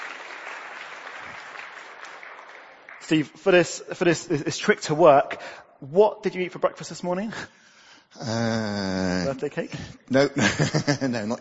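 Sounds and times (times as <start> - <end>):
audience applause: 0.0 - 3.3
speech: 3.1 - 11.3
laughter: 10.2 - 11.3.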